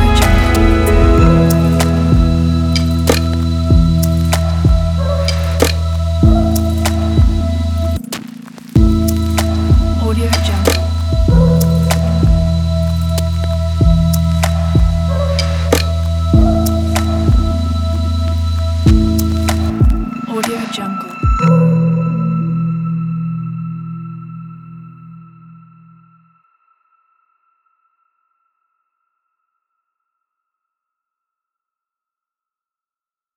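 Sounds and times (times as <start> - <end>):
documentary ambient music: 0.0 - 26.3.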